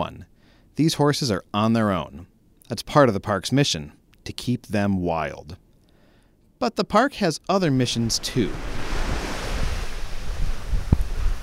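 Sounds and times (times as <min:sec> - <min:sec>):
speech: 0:00.0 - 0:05.6, 0:06.6 - 0:08.8
surf on a sandy beach: 0:07.8 - 0:11.4
gusts of wind buffeting the microphone: 0:07.9 - 0:11.4.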